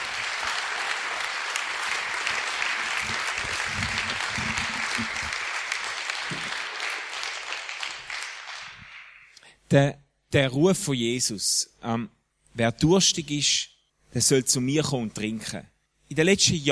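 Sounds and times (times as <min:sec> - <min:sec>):
crowd applause: 0:00.0 - 0:09.4
speech: 0:09.7 - 0:16.7.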